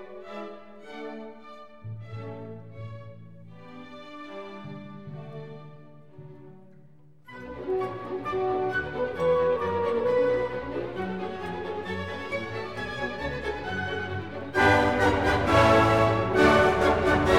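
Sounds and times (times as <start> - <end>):
symphony orchestra playing a dance in D major: 7.5 - 17.3.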